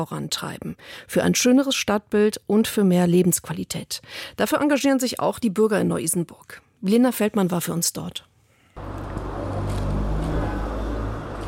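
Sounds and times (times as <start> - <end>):
speech: 0.0 - 9.0
cars rushing past on Frankfurter Strasse: 8.8 - 11.4.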